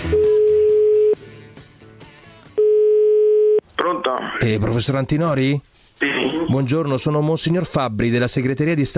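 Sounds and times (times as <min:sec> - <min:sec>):
telephone ringing tone played back from a tape recording: 0:00.1 - 0:01.2, 0:02.6 - 0:03.6
speech: 0:04.4 - 0:08.9.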